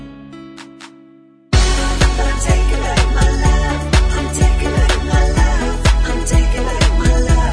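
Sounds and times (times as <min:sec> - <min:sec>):
backing vocals: 0:01.6 - 0:07.5.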